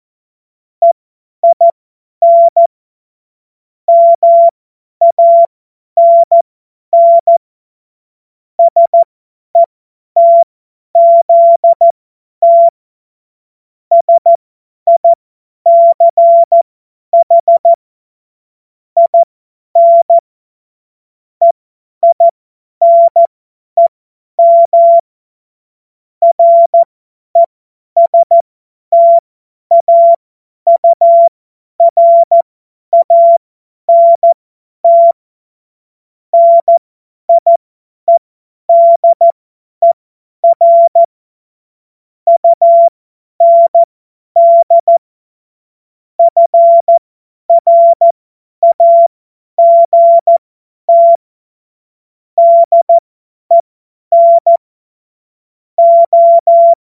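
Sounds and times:
CW Morse code beeps: 0.8s - 2.6s, 3.9s - 6.4s, 7.0s - 7.4s, 8.6s - 12.7s, 13.9s - 16.6s, 17.2s - 17.8s, 19.0s - 20.2s, 21.4s - 25.1s, 26.2s - 35.2s, 36.4s - 41.1s, 42.3s - 45.0s, 46.2s - 51.2s, 52.4s - 54.6s, 55.8s - 56.8s.

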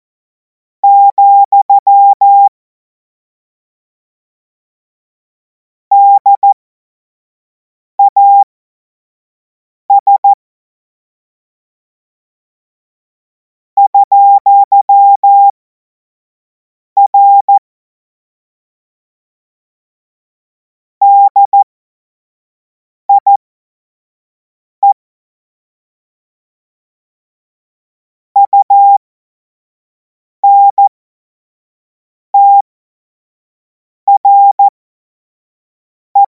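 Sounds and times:
Morse code tones for a Morse course: 0.8s - 2.5s, 5.9s - 6.6s, 9.9s - 10.4s, 13.9s - 15.5s, 17.1s - 17.6s, 21.0s - 21.6s, 23.1s - 23.4s, 28.4s - 29.0s, 30.4s - 30.9s, 32.4s - 32.6s, 34.1s - 34.7s.

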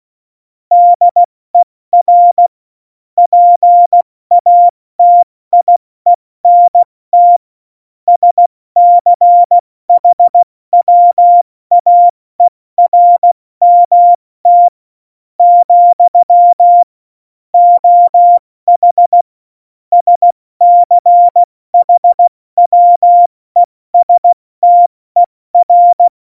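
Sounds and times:
CW Morse code beeps: 0.7s - 1.3s, 2.0s - 2.5s, 3.2s - 5.8s, 6.4s - 7.4s, 8.1s - 14.7s, 15.4s - 16.9s, 17.6s - 19.2s, 19.9s - 26.1s.

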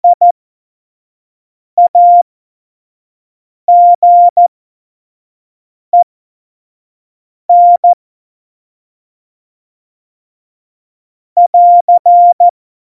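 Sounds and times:
Morse code tones at speed 25: 1.8s - 2.2s, 3.7s - 4.4s, 7.5s - 8.0s, 11.4s - 12.5s.

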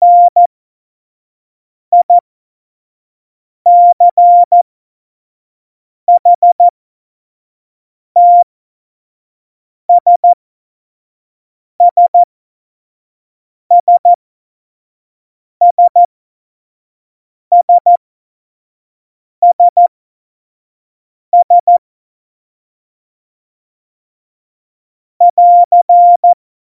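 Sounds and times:
Morse code course beeps: 0.0s - 0.5s, 3.7s - 4.6s, 6.2s - 6.7s, 8.2s - 8.4s, 9.9s - 10.4s, 11.9s - 12.3s, 13.7s - 14.2s, 15.7s - 16.1s, 17.6s - 18.0s, 19.4s - 19.9s, 21.4s - 21.8s, 25.3s - 26.4s.

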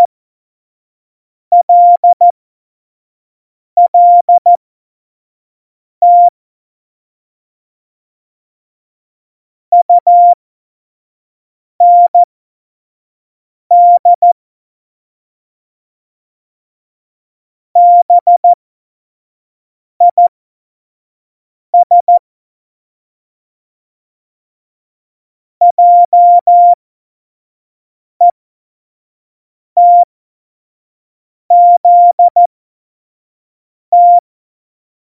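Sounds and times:
Morse code beeps for a Morse course: 1.5s - 2.3s, 3.8s - 4.6s, 6.0s - 6.3s, 9.7s - 10.4s, 11.8s - 12.3s, 13.7s - 14.4s, 17.8s - 18.6s, 21.8s - 22.2s, 25.6s - 26.8s, 29.8s - 30.1s, 31.5s - 32.5s, 33.9s - 34.2s.

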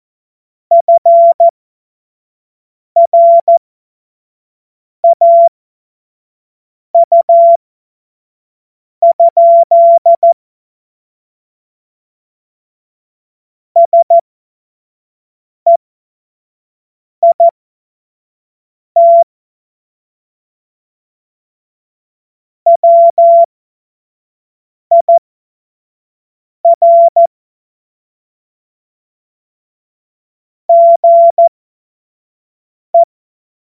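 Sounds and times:
Morse code course tones: 0.7s - 1.5s, 3.0s - 3.5s, 5.0s - 5.5s, 7.0s - 7.6s, 9.0s - 10.4s, 13.8s - 14.2s, 19.0s - 19.2s, 22.7s - 23.5s, 24.9s - 25.1s, 26.7s - 27.3s, 30.7s - 31.5s.

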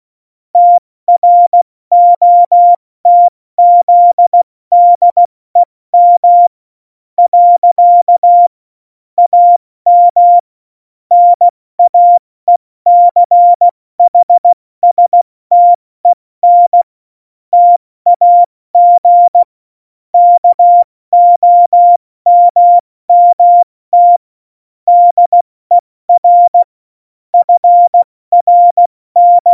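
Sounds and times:
CW Morse code beeps: 0.6s - 5.2s, 6.0s - 6.5s, 7.3s - 8.5s, 9.2s - 10.4s, 11.1s - 15.8s, 16.4s - 16.9s, 17.6s - 19.5s, 20.2s - 24.2s, 24.9s - 25.4s, 26.1s - 26.7s, 27.4s - 29.5s.

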